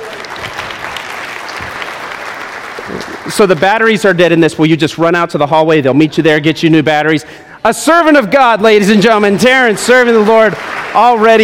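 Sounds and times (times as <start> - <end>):
crowd applause: 0.0 - 3.9, 9.0 - 11.4
speech: 2.9 - 11.4.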